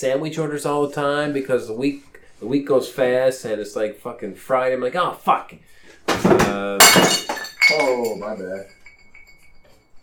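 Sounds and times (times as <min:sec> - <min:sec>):
speech: 0:00.0 - 0:08.8
beer mug breaking: 0:06.1 - 0:09.7
thin high ringing tone: 0:08.6 - 0:10.0.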